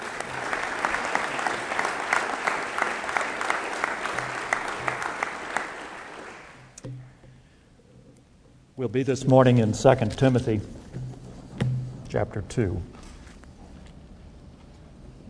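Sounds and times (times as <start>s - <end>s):
church congregation applauding at a morning service: 0.0s - 6.8s
speech: 8.8s - 10.8s, 12.2s - 12.9s.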